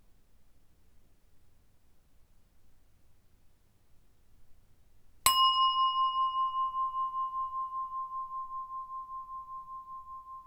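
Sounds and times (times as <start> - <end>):
meditation bell ringing: 5.3 - 10.4.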